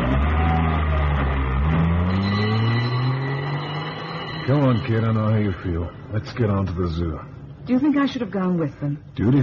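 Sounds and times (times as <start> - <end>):
ambulance engine arriving: 0.1 - 6.2
speech: 4.7 - 9.4.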